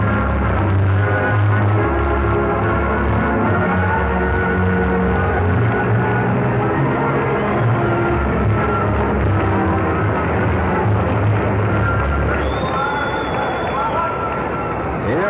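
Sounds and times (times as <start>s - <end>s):
convention floor crowd cheering: 0.0s - 15.0s
musical tones: 0.0s - 15.0s
thin high whistle-like tone: 11.8s - 14.8s.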